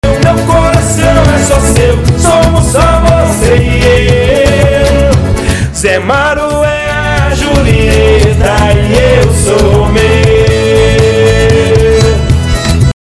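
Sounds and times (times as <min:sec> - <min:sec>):
sung jingle: 0:00.0 - 0:12.9.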